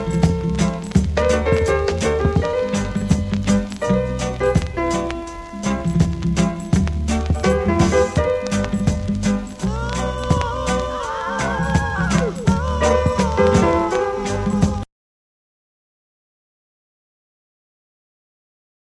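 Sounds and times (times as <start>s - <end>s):
club reggae music: 0.0s - 14.9s.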